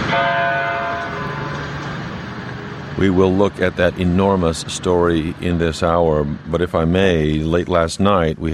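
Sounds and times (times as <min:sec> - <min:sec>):
church bells tolling in Newtown: 0:00.1 - 0:01.9
speech: 0:03.0 - 0:08.5.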